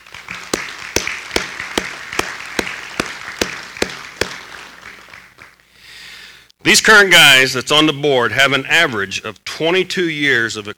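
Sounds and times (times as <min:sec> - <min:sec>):
audience applause: 0:00.0 - 0:05.6
speech: 0:06.7 - 0:10.7.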